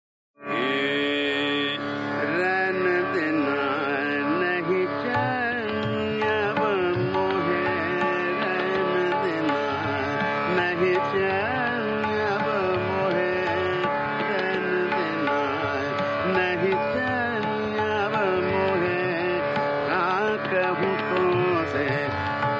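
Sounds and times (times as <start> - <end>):
Nat Bihag raga in trital: 0.4 - 22.5.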